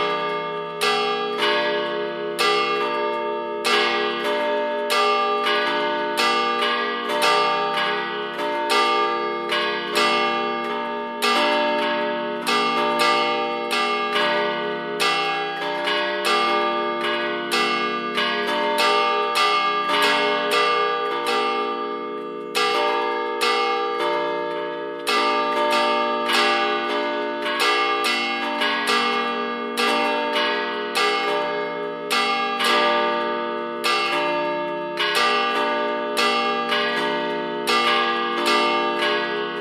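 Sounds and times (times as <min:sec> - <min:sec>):
used multi-voice church bells ringing in d1 f1 g1: 0:00.0 - 0:39.6.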